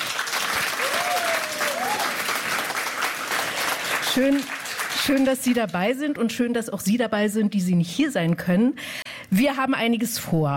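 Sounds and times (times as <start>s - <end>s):
audience applause: 0.0s - 5.7s
speech: 4.2s - 10.5s.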